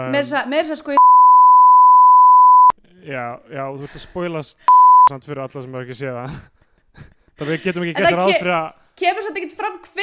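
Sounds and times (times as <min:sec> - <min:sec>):
speech: 0:00.0 - 0:01.0, 0:03.0 - 0:10.0
censor bleep over spoiler: 0:01.0 - 0:02.7, 0:04.7 - 0:05.1.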